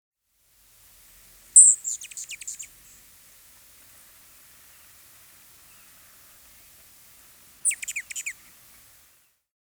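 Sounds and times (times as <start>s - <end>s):
Allen's hummingbird chip calls: 1.5s - 3.0s, 3.9s - 9.0s.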